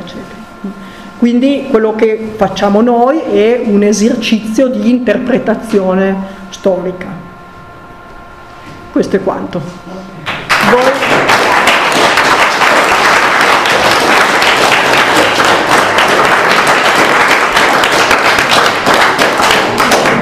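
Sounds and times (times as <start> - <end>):
speech: 0.6 - 7.2, 9.0 - 10.1, 10.7 - 11.1
audience applause: 10.5 - 20.2.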